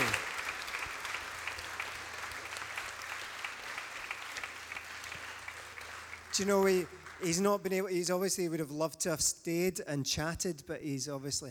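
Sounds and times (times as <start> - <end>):
audience cheering and applause: 0.0 - 7.4
speech: 6.4 - 11.4.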